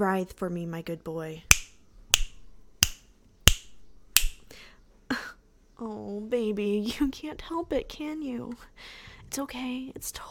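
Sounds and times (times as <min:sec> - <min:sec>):
speech: 0:00.0 - 0:01.6, 0:05.8 - 0:10.2
finger snapping: 0:01.5 - 0:04.6.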